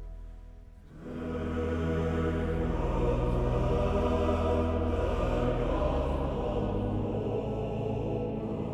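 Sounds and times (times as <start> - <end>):
male choir singing: 0.9 - 8.7.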